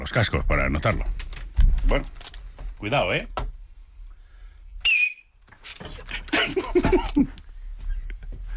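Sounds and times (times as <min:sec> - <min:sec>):
speech: 0:00.1 - 0:03.4
very high-pitched human whistle: 0:04.8 - 0:05.4
laughter: 0:06.1 - 0:07.4.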